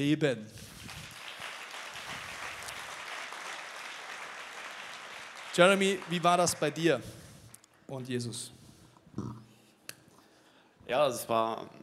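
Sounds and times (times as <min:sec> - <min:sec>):
speech: 0:00.0 - 0:01.0, 0:05.6 - 0:07.2, 0:07.9 - 0:08.6, 0:09.2 - 0:09.4, 0:10.9 - 0:11.8
applause: 0:00.6 - 0:07.1.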